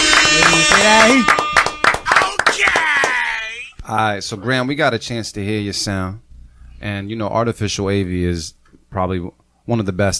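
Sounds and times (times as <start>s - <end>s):
people clapping: 0.0s - 3.5s
speech: 0.9s - 1.4s, 3.9s - 6.2s, 6.8s - 10.1s.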